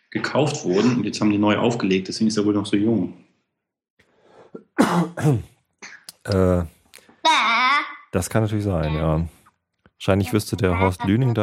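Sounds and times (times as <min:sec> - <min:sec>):
speech: 0:00.1 - 0:03.3, 0:04.8 - 0:05.5, 0:06.3 - 0:06.8, 0:08.1 - 0:09.4, 0:10.0 - 0:11.4
person clearing throat: 0:04.5 - 0:06.1
person coughing: 0:04.6 - 0:06.1.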